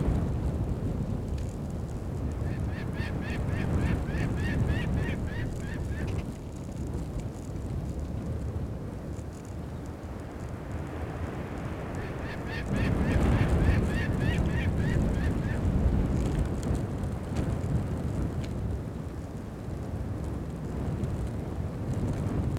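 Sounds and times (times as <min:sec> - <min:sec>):
strong gusting wind: 0:00.0 - 0:22.5
gyrfalcon chattering: 0:02.4 - 0:06.3, 0:12.0 - 0:15.6.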